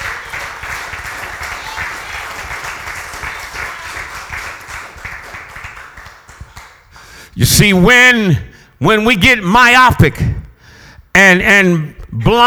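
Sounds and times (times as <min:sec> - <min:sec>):
audience clapping hands: 0:00.0 - 0:07.3
speech: 0:07.4 - 0:10.3, 0:11.2 - 0:12.4.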